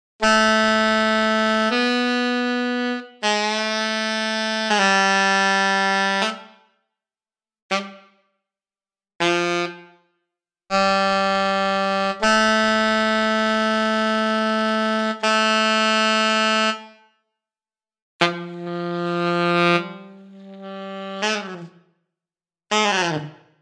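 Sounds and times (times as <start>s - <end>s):
alto saxophone: 0.2s - 6.7s, 7.7s - 8.2s, 9.2s - 10.1s, 10.7s - 17.1s, 18.2s - 21.9s, 22.7s - 23.5s.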